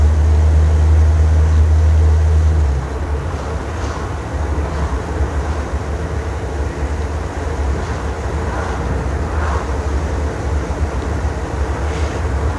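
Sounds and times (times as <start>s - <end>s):
Renault 4 car: 0.0s - 12.5s.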